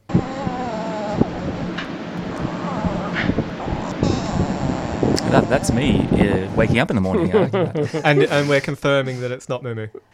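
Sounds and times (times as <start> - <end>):
dog making strange vocal noises: 0.0 - 6.0
rushing noise: 0.0 - 8.7
laughter: 5.3 - 9.2
speech: 5.3 - 10.0.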